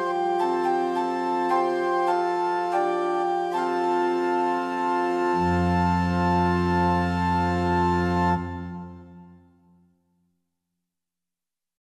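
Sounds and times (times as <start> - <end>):
organ in meantone temperament: 0.0 - 9.4.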